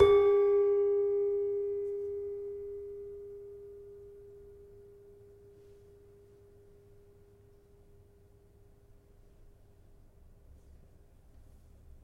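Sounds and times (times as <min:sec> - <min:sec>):
demung gamelan metallophone: 0:00.0 - 0:04.6.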